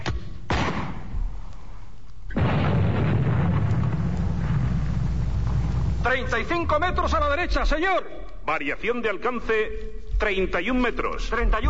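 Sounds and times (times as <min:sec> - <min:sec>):
artillery guns booming from the Watchung Mountains: 0:00.5 - 0:01.2, 0:02.3 - 0:06.8
speech: 0:06.1 - 0:11.6.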